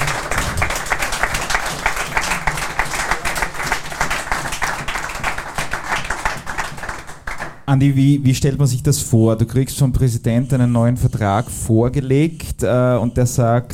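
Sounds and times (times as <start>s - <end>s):
audience applause: 0.0s - 7.6s
speech: 7.7s - 13.7s.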